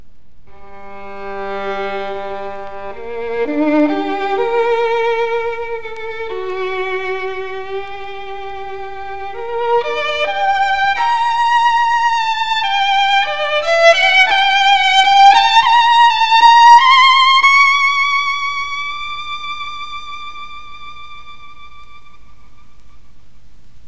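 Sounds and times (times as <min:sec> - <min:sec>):
bowed Guarneri string instrument: 0:00.4 - 0:23.2.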